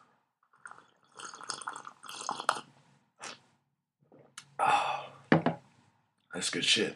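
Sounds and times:
slurping sips of coffee from a cup: 0.6 - 3.4
speech: 6.4 - 6.9.

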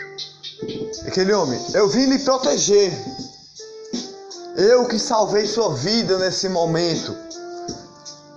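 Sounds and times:
birds singing: 0.1 - 0.9
speech: 1.1 - 3.1, 4.6 - 7.3.

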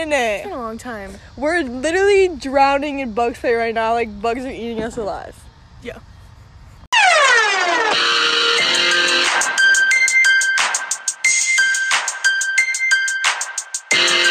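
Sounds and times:
speech: 0.0 - 6.1
loud instrumental electronic intro music with pulsing beat: 6.9 - 14.2
downward-sweeping synth tone: 7.0 - 9.2.

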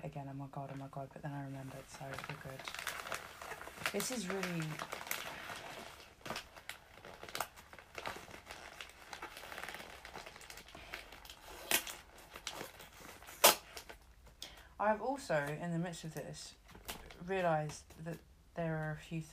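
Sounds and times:
speech: 0.1 - 3.0, 3.9 - 5.0, 14.8 - 16.6, 17.2 - 19.3
wrapping paper crinkling and rustling: 1.5 - 14.2.

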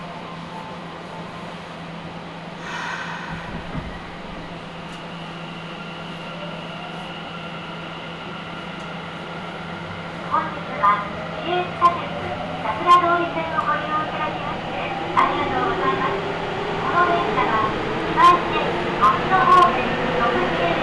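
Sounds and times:
Nagoya subway train on the Sakura-dori Line humming and rumbling: 0.0 - 20.8
voices: 10.2 - 20.8.

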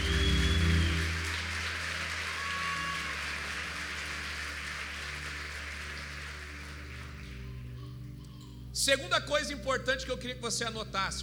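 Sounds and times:
audience applause: 0.0 - 7.6
speech: 8.8 - 11.2.

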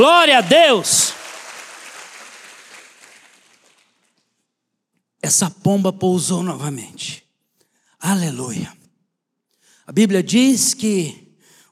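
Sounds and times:
speech: 0.0 - 1.2, 5.2 - 7.2, 8.0 - 8.8, 9.9 - 11.7
audience applauding loudly: 0.0 - 4.2.

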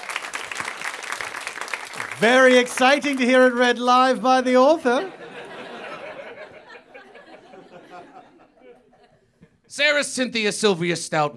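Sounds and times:
crowd round of applause: 0.0 - 7.2
laughter: 0.0 - 9.3
speech: 2.2 - 5.2, 9.8 - 11.3.

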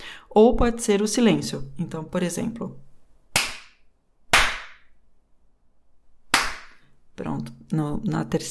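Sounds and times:
speech: 0.4 - 2.8, 7.2 - 8.5
rhythmic hand claps: 3.4 - 4.9, 6.3 - 6.8.

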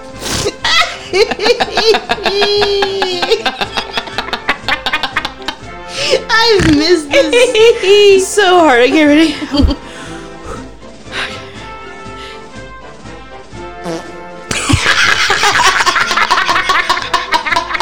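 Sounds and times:
speech: 0.4 - 2.9, 6.5 - 9.8
laughter: 0.4 - 6.2, 7.1 - 8.2, 9.2 - 9.9, 14.5 - 17.8
mouth-blown fake fart: 13.6 - 14.5.

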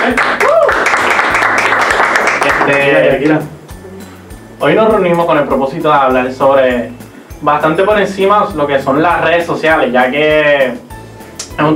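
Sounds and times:
audience applause: 0.0 - 3.0
speech: 2.7 - 3.6, 4.6 - 10.8, 11.6 - 11.7.

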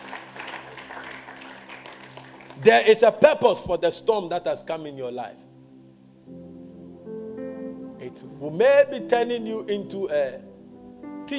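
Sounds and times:
audience clapping: 0.0 - 3.0
speech: 2.6 - 5.5, 8.2 - 10.5.

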